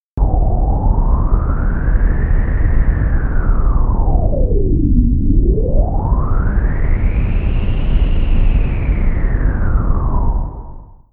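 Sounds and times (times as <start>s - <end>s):
data sonification of a tidal cycle from a seafloor bottom pressure sensor: 0.2s - 10.9s.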